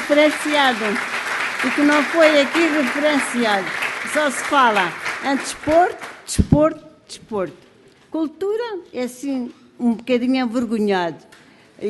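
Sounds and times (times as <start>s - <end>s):
audience applause honouring community theatre: 0.0s - 6.2s
speech: 0.1s - 11.8s.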